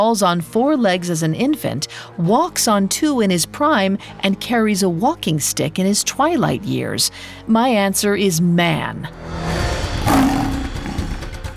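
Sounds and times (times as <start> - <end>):
speech: 0.0 - 10.4
rough growl of a sphinx: 9.6 - 11.5.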